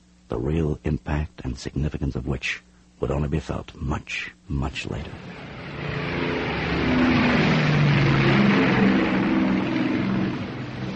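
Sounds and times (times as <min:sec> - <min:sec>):
speech: 0:00.3 - 0:06.0
warplane engines roaring on the Enterprise's carrier deck: 0:04.8 - 0:10.9.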